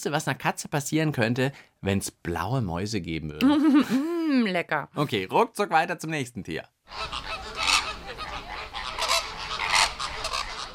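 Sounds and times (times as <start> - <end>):
speech: 0.0 - 7.3
flamingo calls: 6.9 - 10.7.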